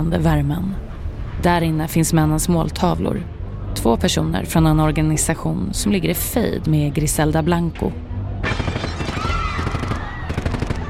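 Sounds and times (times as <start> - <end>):
speech: 0.0 - 0.8, 1.4 - 8.8
burst of gunfire: 8.4 - 10.8.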